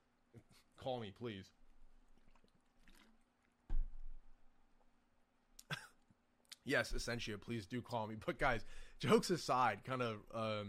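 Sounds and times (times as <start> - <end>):
faint steady hum: 0.0 - 10.6
speech: 0.6 - 1.6, 6.6 - 10.6
soft gulp of water: 2.1 - 3.5.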